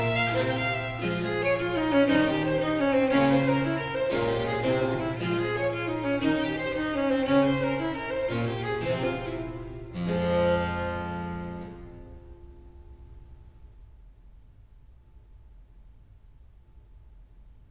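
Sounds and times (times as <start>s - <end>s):
sonata gigue movement in G minor, allegro: 0.0s - 11.4s.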